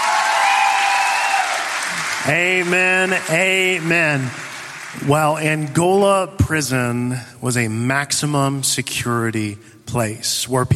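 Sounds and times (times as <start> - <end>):
church congregation applause for its students: 0.0 - 6.1
speech: 2.3 - 10.7.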